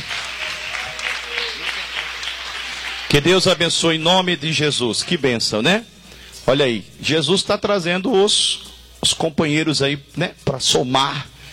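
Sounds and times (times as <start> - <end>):
congregation clapping at a Portuguese-language church service: 0.0 - 5.8
speech: 3.1 - 11.3.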